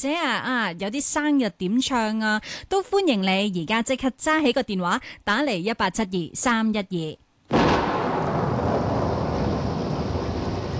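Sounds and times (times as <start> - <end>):
speech: 0.0 - 7.8
heavy rain: 8.0 - 10.7.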